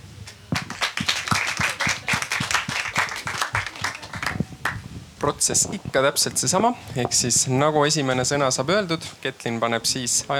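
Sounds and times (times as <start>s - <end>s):
audience applause: 0.6s - 4.8s
speech: 5.2s - 10.3s.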